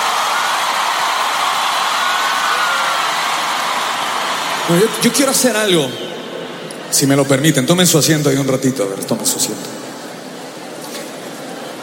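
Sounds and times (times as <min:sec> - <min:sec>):
large crowd applauding loudly: 0:00.0 - 0:06.7
speech: 0:04.7 - 0:06.1, 0:06.9 - 0:09.9.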